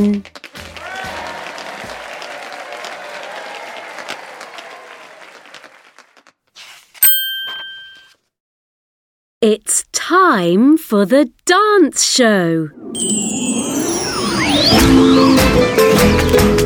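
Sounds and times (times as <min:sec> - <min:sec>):
speech: 0:00.0 - 0:00.4, 0:09.4 - 0:16.6
hand clapping: 0:00.2 - 0:06.4
bright bell ding: 0:07.0 - 0:08.1, 0:13.0 - 0:15.4.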